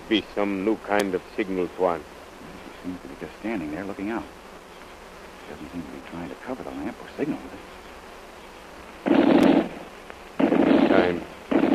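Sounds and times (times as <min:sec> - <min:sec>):
speech: 0:00.1 - 0:02.2, 0:02.8 - 0:04.4, 0:05.5 - 0:07.8
machine gun firing: 0:09.0 - 0:09.8, 0:10.4 - 0:11.7.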